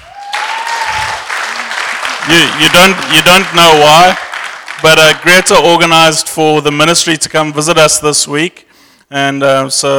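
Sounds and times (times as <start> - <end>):
round of applause: 0.0 - 5.5
speech: 2.3 - 4.2, 4.8 - 9.9.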